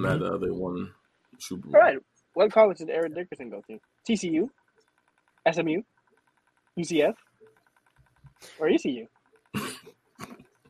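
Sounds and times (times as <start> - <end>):
speech: 0.0 - 4.6, 5.4 - 5.9, 6.8 - 7.3, 8.4 - 10.4
sneeze: 9.6 - 9.8
faint huff: 9.6 - 10.4.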